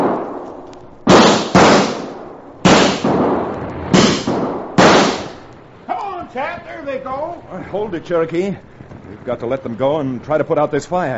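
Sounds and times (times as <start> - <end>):
gunshots fired at coyotes: 0.0 - 5.6
speech: 6.7 - 11.1.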